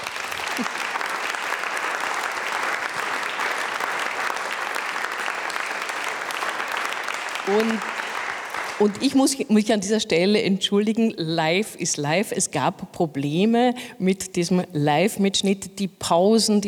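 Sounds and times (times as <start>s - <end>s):
audience applause: 0.0s - 9.2s
speech: 0.6s - 0.8s, 7.5s - 8.0s, 8.8s - 16.6s.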